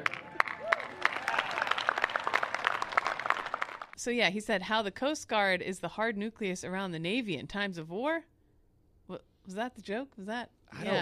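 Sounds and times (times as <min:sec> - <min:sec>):
audience applause: 0:00.0 - 0:04.0
speech: 0:04.0 - 0:08.3, 0:09.1 - 0:11.0.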